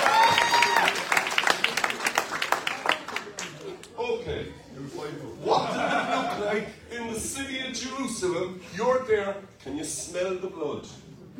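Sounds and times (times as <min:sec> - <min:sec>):
audience applause: 0:00.0 - 0:03.9
laughter: 0:05.4 - 0:06.8
speech: 0:06.6 - 0:11.3.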